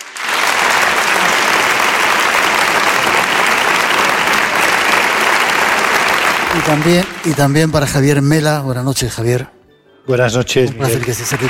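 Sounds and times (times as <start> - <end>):
audience applause: 0.0 - 8.4, 10.8 - 11.4
speech: 6.6 - 11.4.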